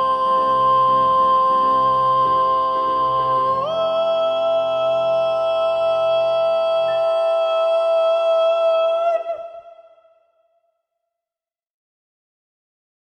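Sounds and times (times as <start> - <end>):
soprano singing: 0.0 - 10.2.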